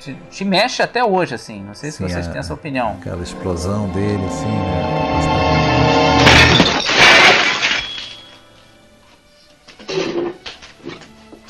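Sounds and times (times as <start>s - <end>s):
speech: 0.0s - 6.5s
dishes smashing as table is cleared: 6.1s - 8.4s.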